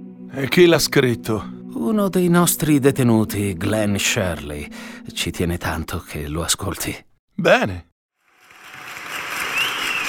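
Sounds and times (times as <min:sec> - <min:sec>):
speech: 0:00.3 - 0:07.9
audience applause: 0:08.3 - 0:10.0.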